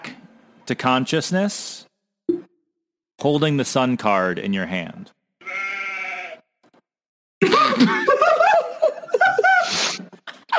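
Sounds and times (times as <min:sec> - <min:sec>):
speech: 0:00.7 - 0:01.9, 0:03.2 - 0:05.2
sheep bleat from a soundboard: 0:05.4 - 0:06.4
laughter: 0:07.4 - 0:10.5.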